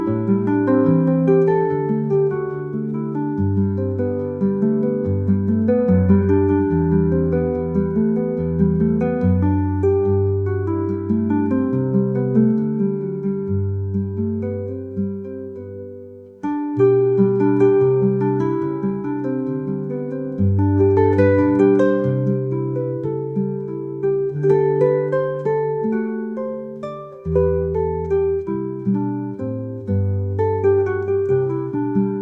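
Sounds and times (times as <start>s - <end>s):
acoustic guitar: 0.0s - 32.1s.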